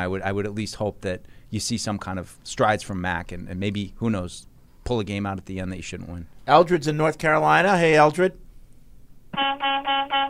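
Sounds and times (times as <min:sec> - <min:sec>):
speech: 0:00.0 - 0:08.4, 0:09.3 - 0:10.2
car horn honk: 0:09.4 - 0:10.2.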